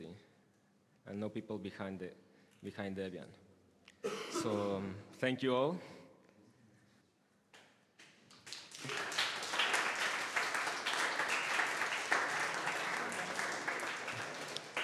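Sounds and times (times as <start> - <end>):
speech: 1.1 - 3.4, 4.0 - 6.0
audience clapping: 8.0 - 14.8.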